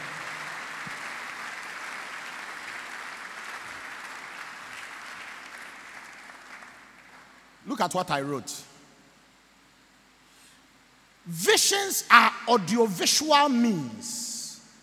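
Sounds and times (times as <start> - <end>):
crowd clapping: 0.0 - 7.4
speech: 7.6 - 8.7, 11.3 - 14.2.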